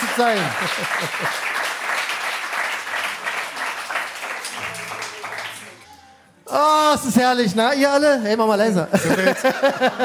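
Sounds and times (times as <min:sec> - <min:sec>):
laughter: 0:00.0 - 0:01.6, 0:08.9 - 0:10.0
studio audience applause: 0:00.0 - 0:06.2
speech: 0:00.2 - 0:01.5, 0:06.5 - 0:10.0.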